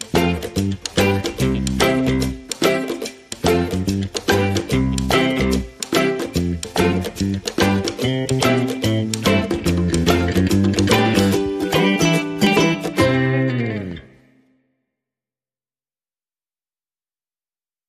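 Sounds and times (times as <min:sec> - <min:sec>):
light music without drums: 0:00.0 - 0:14.2.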